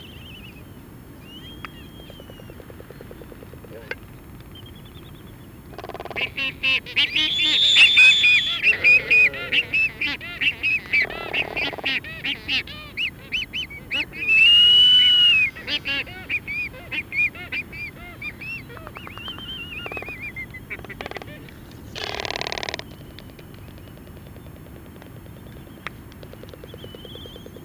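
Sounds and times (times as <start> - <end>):
Black-footed albatross calling: 6.2 - 22.8.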